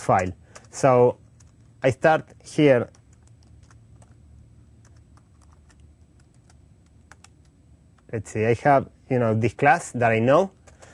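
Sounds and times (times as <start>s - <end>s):
speech: 0.0s - 1.2s, 1.8s - 3.0s, 8.1s - 10.6s
typing code on a computer keyboard: 0.0s - 4.2s, 4.8s - 8.1s, 10.5s - 10.9s
low steady hum: 0.0s - 10.9s.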